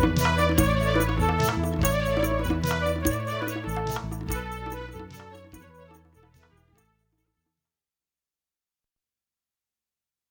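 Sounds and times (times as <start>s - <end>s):
instrumental music: 0.0s - 6.7s.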